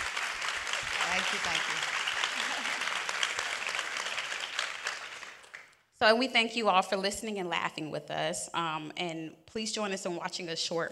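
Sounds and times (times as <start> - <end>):
audience applause: 0.0 - 5.8
speech: 1.2 - 1.9, 6.0 - 10.9.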